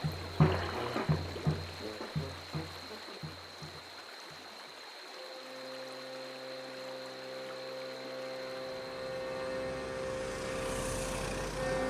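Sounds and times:
flowing river water: 0.0s - 11.8s.

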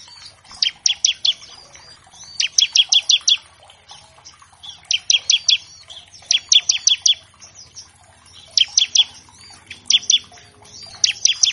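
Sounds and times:
Bar-winged Prinia song of sharp chips: 0.0s - 11.5s
faint twittering: 0.0s - 11.5s.

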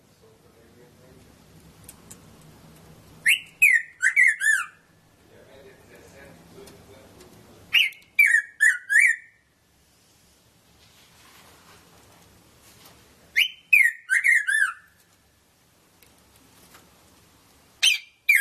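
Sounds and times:
red-throated parrotfinch Erythrura psittacea calling: 3.2s - 5.0s, 7.7s - 9.5s, 13.3s - 15.0s, 17.8s - 18.3s.

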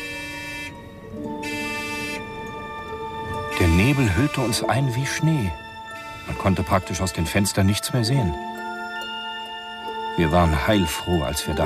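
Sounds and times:
car horn honking: 0.0s - 0.8s, 1.4s - 2.4s, 5.8s - 6.8s
speech: 3.6s - 5.6s, 6.4s - 8.7s, 10.2s - 11.6s.

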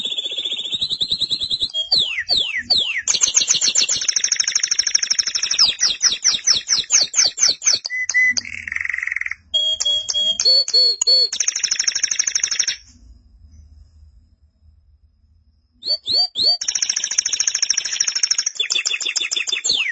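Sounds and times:
canary song: 0.0s - 12.9s, 15.8s - 19.9s
low hum: 12.9s - 15.8s.

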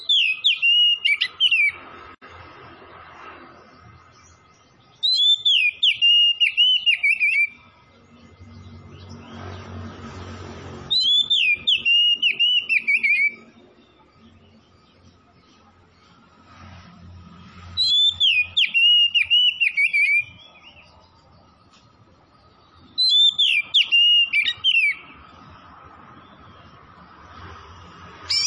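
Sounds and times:
Oriental magpie-robin song: 0.0s - 1.9s, 4.2s - 9.5s, 10.8s - 15.6s, 17.6s - 26.8s, 28.2s - 28.4s.

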